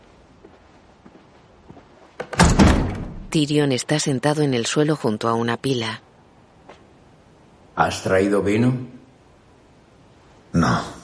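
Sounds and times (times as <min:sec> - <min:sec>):
wooden pantry door being pulled open: 0:02.2 - 0:03.3
speech: 0:03.3 - 0:06.1, 0:07.8 - 0:09.0, 0:10.5 - 0:11.0.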